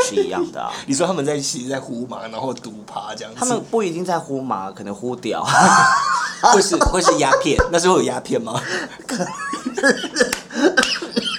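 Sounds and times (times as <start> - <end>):
laughter: 0.0 - 0.7, 5.4 - 7.8, 8.5 - 11.3
speech: 0.0 - 11.0
cough: 10.8 - 11.3.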